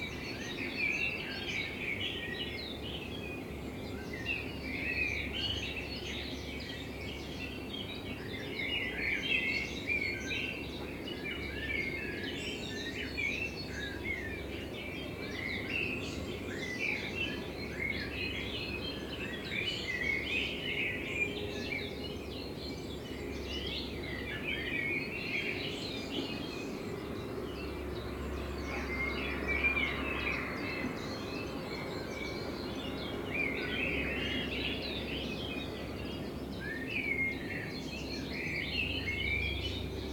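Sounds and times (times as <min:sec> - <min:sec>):
Common blackbird singing: 0:00.0 - 0:40.1.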